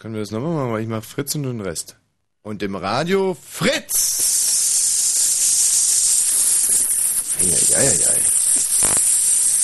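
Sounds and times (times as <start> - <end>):
speech: 0.0 - 4.4
person hissing like an angry rattlesnake: 3.9 - 9.6.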